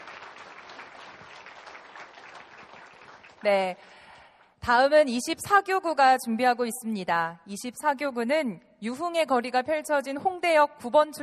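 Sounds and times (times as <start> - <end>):
audience applause: 0.0 - 3.5
speech: 3.4 - 4.0, 4.6 - 11.2.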